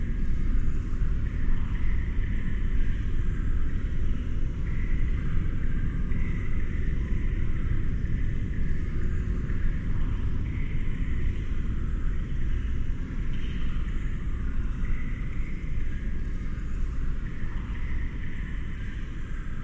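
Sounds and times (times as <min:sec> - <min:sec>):
dark eerie horror dungeon ambience: 0:00.0 - 0:19.6.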